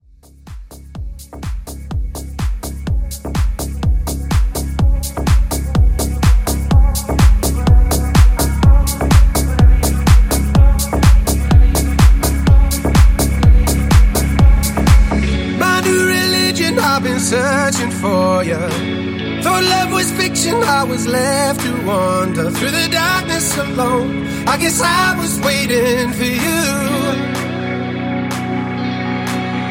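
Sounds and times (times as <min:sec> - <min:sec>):
future house intro: 0:00.0 - 0:29.7.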